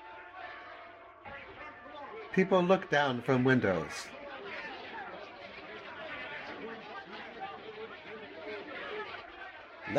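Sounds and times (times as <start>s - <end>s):
crowd procession murmuring: 0.1s - 9.9s
speech: 2.4s - 4.2s.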